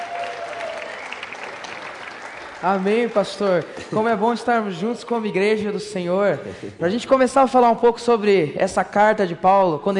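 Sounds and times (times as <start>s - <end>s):
church congregation applauding to welcome a seminarian: 0.0s - 5.4s
speech: 2.6s - 9.9s.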